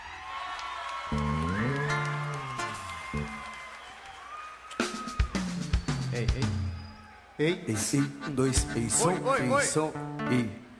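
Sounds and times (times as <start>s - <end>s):
audience applause: 0.0s - 5.4s
scattered cheers: 0.0s - 5.6s, 6.4s - 7.7s
speech: 6.2s - 6.6s, 7.4s - 10.6s.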